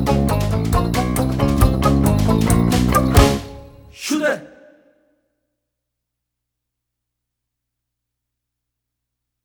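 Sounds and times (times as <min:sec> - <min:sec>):
Christmas song: 0:00.0 - 0:04.8.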